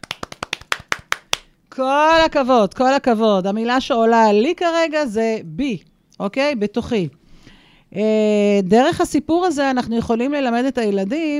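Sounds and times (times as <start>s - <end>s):
hands clapping in applause: 0.0s - 1.5s
speech: 1.8s - 7.2s, 7.9s - 11.3s.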